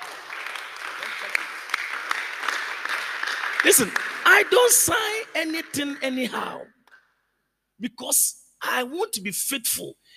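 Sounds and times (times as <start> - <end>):
audience clapping: 0.0 - 7.1
speech: 3.6 - 6.8, 7.8 - 10.1.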